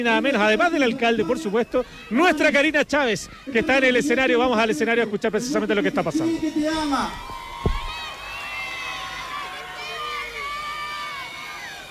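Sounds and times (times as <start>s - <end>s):
speech: 0.0s - 7.4s
audience applause and cheers: 6.0s - 11.8s
low thump: 7.5s - 8.0s.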